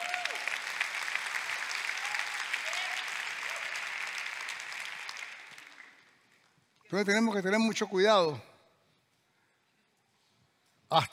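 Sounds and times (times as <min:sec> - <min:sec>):
audience applause: 0:00.0 - 0:06.4
speech: 0:06.9 - 0:08.5, 0:10.9 - 0:11.1.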